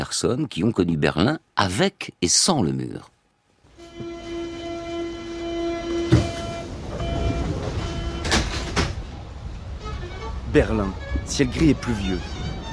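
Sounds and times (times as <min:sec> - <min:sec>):
speech: 0:00.0 - 0:03.1, 0:10.5 - 0:12.4
metro train humming in Berlin's Mitte district on a grey rainy day: 0:03.7 - 0:12.7
sharp clunk: 0:06.1 - 0:06.6, 0:07.6 - 0:09.0.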